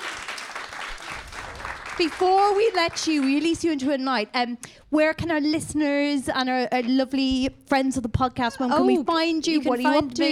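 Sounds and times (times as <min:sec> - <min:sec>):
audience applause: 0:00.0 - 0:03.5
speech: 0:02.0 - 0:10.3.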